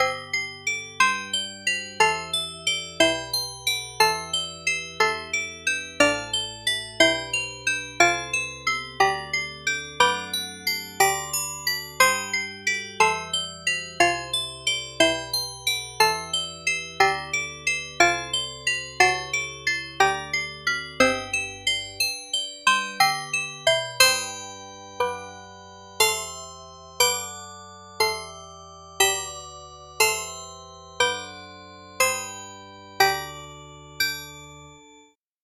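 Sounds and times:
glockenspiel: 0:00.0 - 0:35.2.

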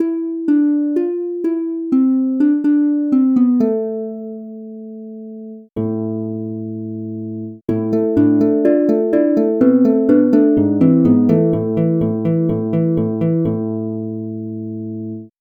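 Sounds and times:
harp: 0:00.0 - 0:05.0, 0:05.8 - 0:14.6.

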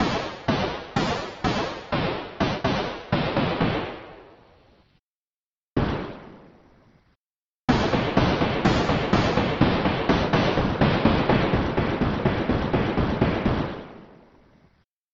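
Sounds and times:
gunshot: 0:00.0 - 0:04.4, 0:05.8 - 0:06.6, 0:07.7 - 0:14.3.

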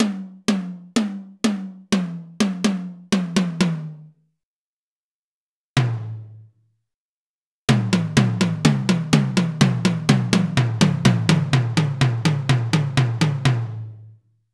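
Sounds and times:
melodic tom drum: 0:00.0 - 0:04.1, 0:05.8 - 0:06.5, 0:07.7 - 0:13.9.

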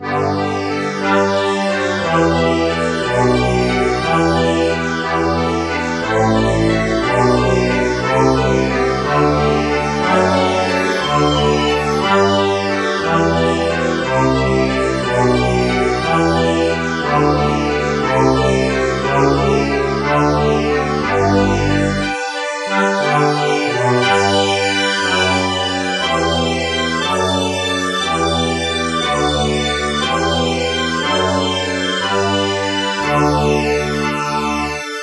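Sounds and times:
accordion playing baroque piece: 0:00.1 - 0:35.0.

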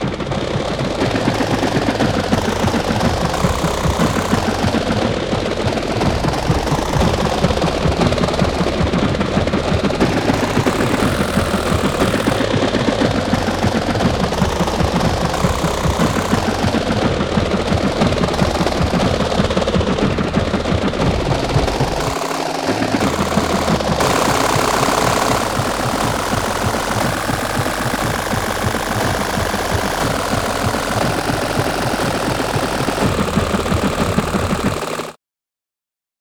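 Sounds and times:
helicopter: 0:00.0 - 0:35.2.

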